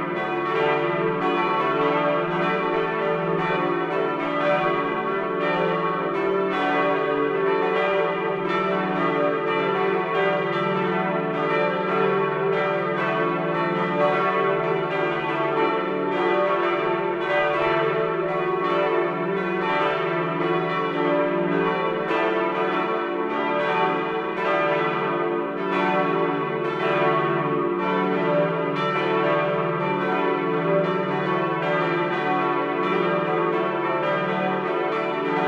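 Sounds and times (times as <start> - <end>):
church bells ringing in Bad Schwartau-Rensefeld: 0.0 - 35.4.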